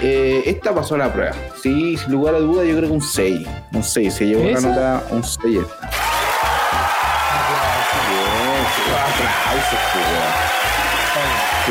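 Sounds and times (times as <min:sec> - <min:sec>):
speech: 0:00.4 - 0:06.1, 0:09.5 - 0:11.6
applause: 0:05.9 - 0:11.6.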